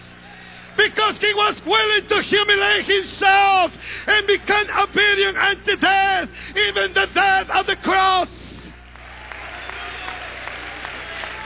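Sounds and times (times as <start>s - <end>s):
speech: 0.8s - 8.4s
audience clapping hands: 8.9s - 11.4s.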